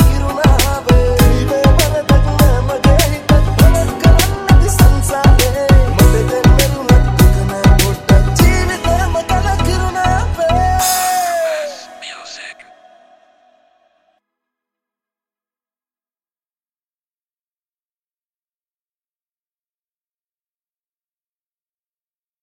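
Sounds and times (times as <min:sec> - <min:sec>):
hardstyle hip hop mix: 0:00.0 - 0:14.2.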